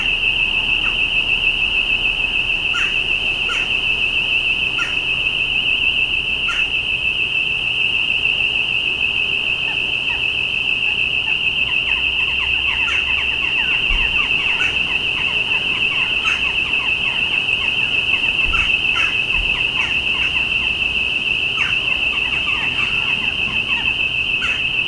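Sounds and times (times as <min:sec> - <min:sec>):
high-pitched whine: 0:00.0 - 0:24.8
birds chirping: 0:09.6 - 0:20.9, 0:21.5 - 0:24.8.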